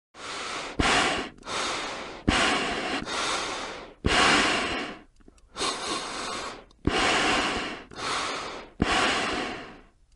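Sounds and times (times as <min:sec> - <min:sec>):
breathing through a mask: 0:00.2 - 0:10.0.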